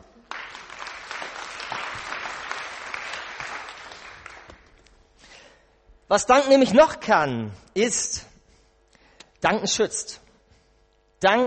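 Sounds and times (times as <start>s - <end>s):
applause: 0.0s - 4.8s
speech: 6.1s - 8.3s, 9.4s - 10.2s, 11.2s - 11.4s.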